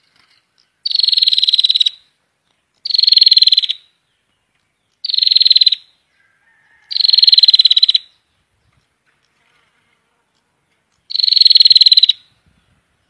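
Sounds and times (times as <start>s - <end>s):
prinia buzzy rattling call bursts: 0.0s - 2.1s, 2.8s - 4.0s, 4.8s - 5.9s, 6.6s - 12.4s.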